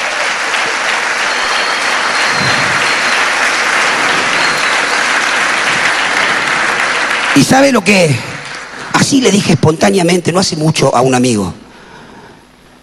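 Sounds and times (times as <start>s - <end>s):
crowd applause: 0.0s - 9.4s
speech: 7.4s - 8.3s, 9.0s - 11.6s.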